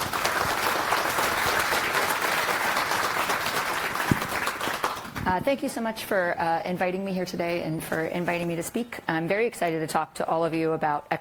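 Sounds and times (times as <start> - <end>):
audience applause welcoming a speaker onto the stage at a talk: 0.0 - 5.2
speech: 5.3 - 11.1.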